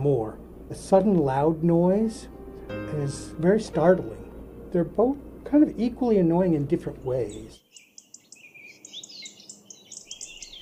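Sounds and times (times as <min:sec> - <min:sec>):
speech: 0:00.0 - 0:07.6
birds chirping and warbling: 0:06.2 - 0:10.6.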